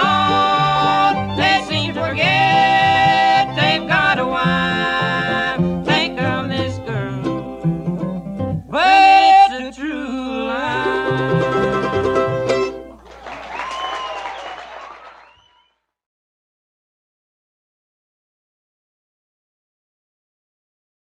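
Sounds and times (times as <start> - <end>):
bluegrass music: 0.0 - 13.7.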